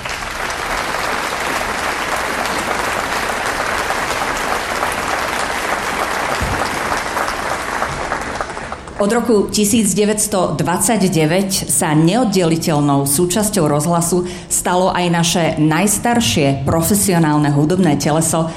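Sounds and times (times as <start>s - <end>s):
audience applause: 0.0s - 9.1s
speech: 9.0s - 18.5s.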